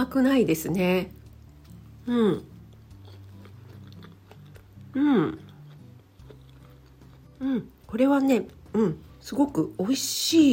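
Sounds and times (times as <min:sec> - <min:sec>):
speech: 0:00.0 - 0:01.2, 0:02.1 - 0:02.5, 0:05.0 - 0:05.4, 0:07.4 - 0:10.5
biting and chewing a Vietnamese coffee flavoured cream puff: 0:01.1 - 0:09.2.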